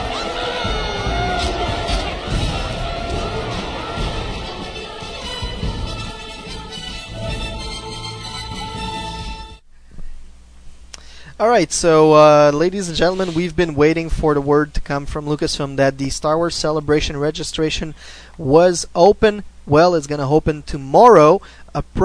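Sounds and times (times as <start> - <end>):
crowd cheering wildly: 0.0 - 6.8
speech: 11.4 - 22.0.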